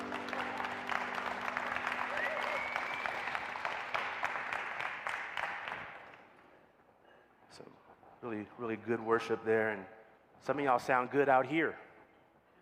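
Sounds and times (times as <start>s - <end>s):
church audience applause: 0.0s - 6.1s
speech: 8.2s - 11.8s.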